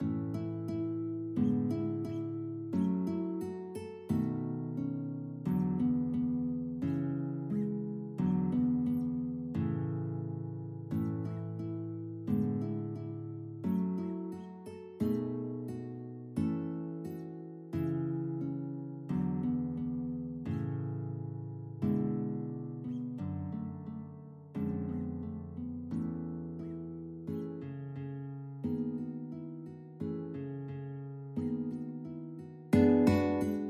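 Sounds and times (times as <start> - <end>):
guitar duet: 0.0 - 33.6.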